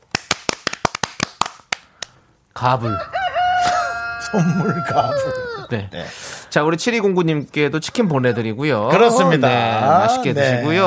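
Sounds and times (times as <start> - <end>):
short burst of hand claps: 0.0 - 2.2
speech: 2.6 - 3.1, 4.3 - 10.8
laughter: 3.6 - 5.6.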